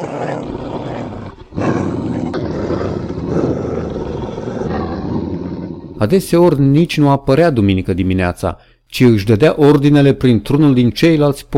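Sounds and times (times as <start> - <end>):
dogs growling: 0.0 - 6.0
speech: 6.0 - 11.5.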